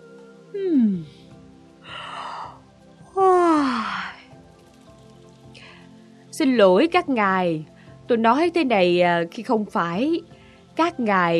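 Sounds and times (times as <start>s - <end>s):
tired yawn: 0.5s - 4.4s
speech: 6.4s - 11.3s.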